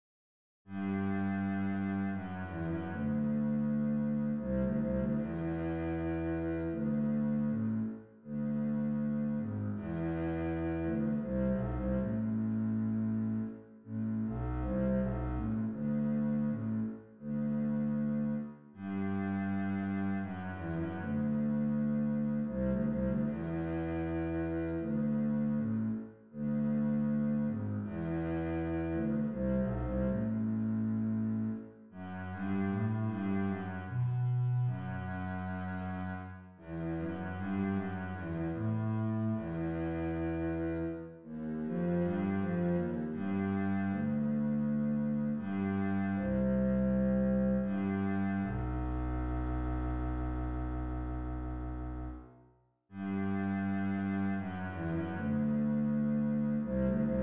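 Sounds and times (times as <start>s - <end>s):
string bass: 0.7s - 57.2s.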